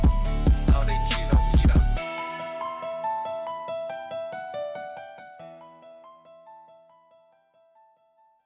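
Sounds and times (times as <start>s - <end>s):
beats: 0.0s - 2.0s.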